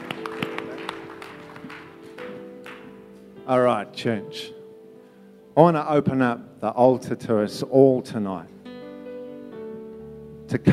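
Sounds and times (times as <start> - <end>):
room full of people clapping: 0.0 - 3.1
speech: 3.5 - 4.6, 5.6 - 8.6, 10.5 - 10.7.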